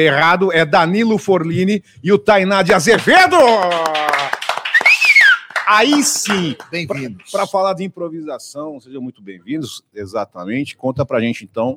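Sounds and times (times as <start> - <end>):
speech: 0.0 - 4.3, 5.7 - 11.7
small group clapping: 2.7 - 7.5
whistle: 4.6 - 5.6.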